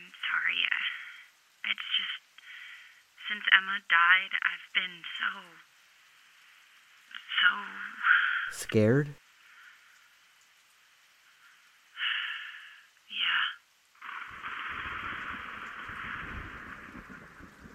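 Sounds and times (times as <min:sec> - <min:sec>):
rain in a storm: 0:00.0 - 0:17.7
speech: 0:03.3 - 0:05.7, 0:07.4 - 0:07.8, 0:08.5 - 0:09.2
thunder: 0:14.2 - 0:17.7.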